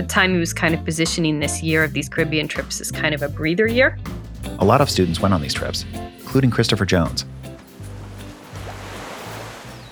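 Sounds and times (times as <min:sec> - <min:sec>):
speech: 0:00.0 - 0:07.5
ocean waves crashing on beach: 0:07.6 - 0:09.8.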